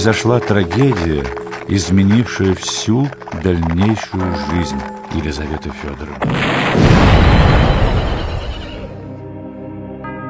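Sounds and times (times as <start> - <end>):
speech: 0.0 - 7.0
bomb explosion: 6.2 - 8.6.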